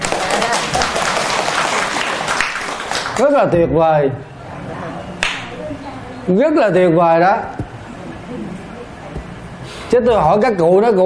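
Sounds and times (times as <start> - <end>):
elderly audience applause at a talk about gratitude to parents: 0.0 - 3.3
speech: 3.2 - 4.3, 6.3 - 7.6, 9.9 - 11.0.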